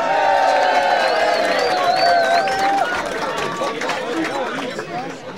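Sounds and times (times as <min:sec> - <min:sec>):
crowd cheering and whooping: 0:00.0 - 0:03.7
audience applause: 0:00.0 - 0:05.2.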